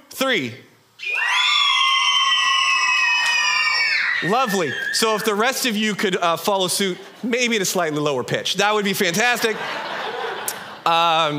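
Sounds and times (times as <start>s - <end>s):
speech: 0.2s - 1.4s, 4.2s - 9.9s, 10.8s - 11.3s
audience screaming together: 1.0s - 5.8s
laughter: 9.1s - 11.3s.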